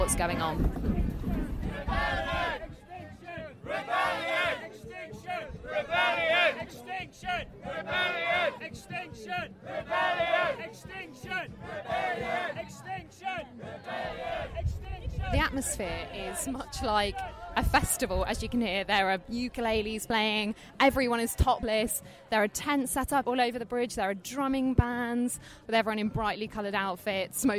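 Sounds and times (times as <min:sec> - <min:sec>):
large crowd of marchers shouting and chanting: 0:00.0 - 0:20.2
speech: 0:00.1 - 0:02.8, 0:03.7 - 0:27.5.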